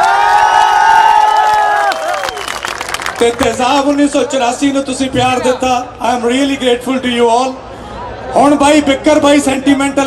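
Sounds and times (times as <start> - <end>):
crowd at a Punjabi stage event cheering and applauding: 0.0 - 3.4
speech: 3.2 - 7.6, 8.3 - 10.0.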